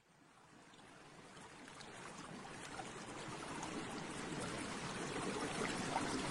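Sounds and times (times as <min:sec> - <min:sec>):
water bubbling: 0:01.5 - 0:06.2.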